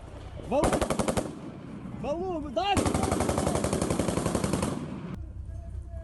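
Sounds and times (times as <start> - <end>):
automatic gunfire in street fighting: 0.6 - 1.4, 2.8 - 5.0.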